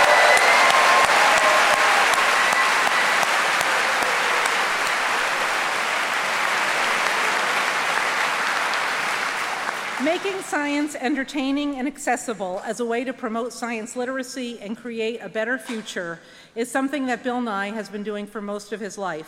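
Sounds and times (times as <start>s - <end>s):
crowd applauding: 0.0s - 10.9s
speech: 10.2s - 19.2s.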